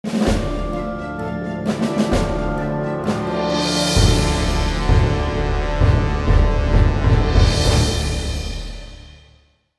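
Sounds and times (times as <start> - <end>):
grand background music: 0.1 - 9.4.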